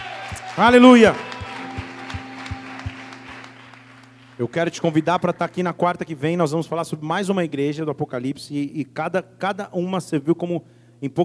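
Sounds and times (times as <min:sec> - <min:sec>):
audience applause: 0:00.0 - 0:05.6
speech: 0:00.6 - 0:01.3, 0:04.4 - 0:11.2.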